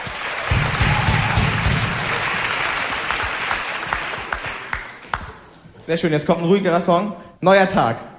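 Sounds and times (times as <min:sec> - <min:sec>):
audience applause: 0:00.0 - 0:05.6
speech: 0:05.9 - 0:08.1.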